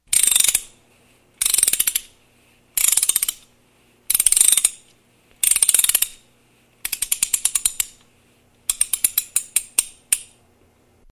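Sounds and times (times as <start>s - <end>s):
clock winding: 0.1s - 0.7s, 1.4s - 2.1s, 2.8s - 3.5s, 4.1s - 4.8s, 5.4s - 6.2s, 6.8s - 8.0s, 8.7s - 10.0s.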